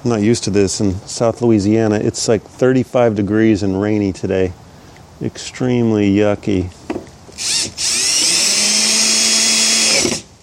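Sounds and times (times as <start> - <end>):
speech: 0.0 - 4.6, 5.2 - 6.8, 7.4 - 8.0
power drill driving screws: 7.3 - 10.3.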